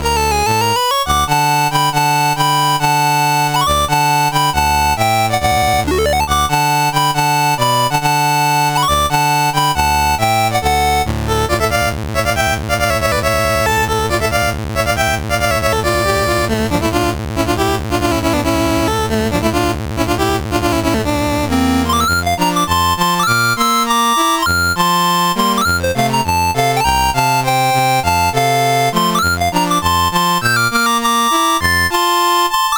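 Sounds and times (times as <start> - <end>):
dance piece in F on a CSG8580R5 sound chip: 0.0 - 32.7.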